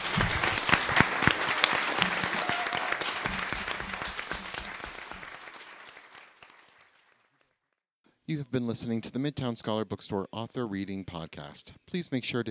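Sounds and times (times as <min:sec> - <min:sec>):
audience applauding: 0:00.0 - 0:07.6
speech: 0:08.3 - 0:12.4.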